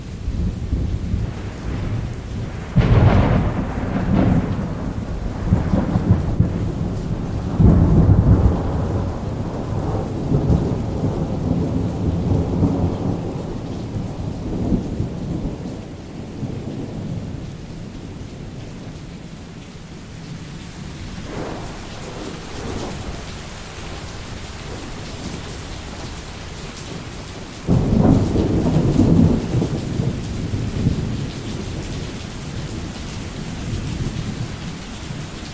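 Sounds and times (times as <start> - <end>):
thunder: 0.4 - 17.5, 21.2 - 26.1, 26.9 - 32.1.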